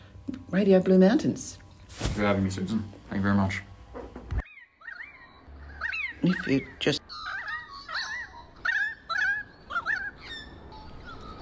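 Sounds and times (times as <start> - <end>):
speech: 0.5 - 3.7, 6.2 - 7.0
Australian birds calling: 4.4 - 11.4.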